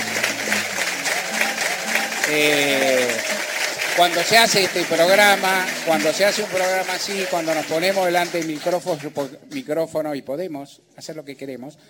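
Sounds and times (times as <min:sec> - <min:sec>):
audience ovation applause: 0:00.0 - 0:09.4
speech: 0:02.3 - 0:03.0, 0:04.0 - 0:11.8.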